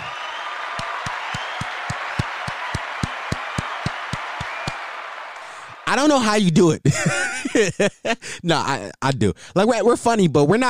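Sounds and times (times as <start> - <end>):
hand claps: 0.0 - 5.8
speech: 5.9 - 10.6
laughter: 6.6 - 8.4.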